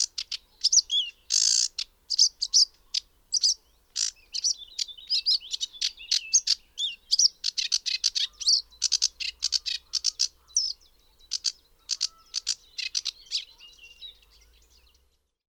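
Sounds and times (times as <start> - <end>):
sedge warbler Acrocephalus schoenobaenus singing: 0.0 - 15.2.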